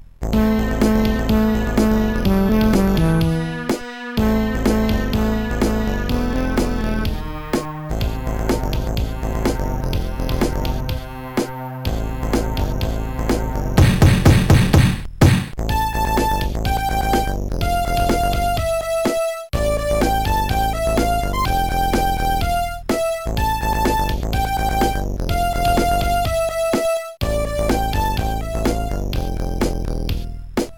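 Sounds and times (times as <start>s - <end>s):
brass instruments: 0.3s - 30.7s.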